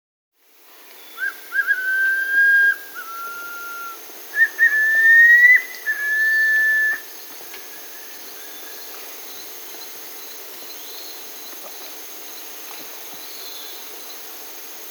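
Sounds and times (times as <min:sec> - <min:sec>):
striolated puffbird whistle in South America: 0:01.2 - 0:07.0.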